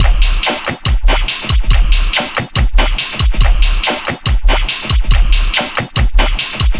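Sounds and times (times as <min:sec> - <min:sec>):
eclectic electronica drum beat: 0:00.0 - 0:06.7.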